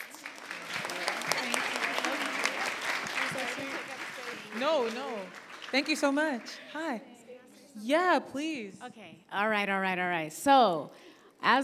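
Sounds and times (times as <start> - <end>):
audience applause: 0.0 - 6.9
speech: 4.6 - 7.1, 7.8 - 11.6.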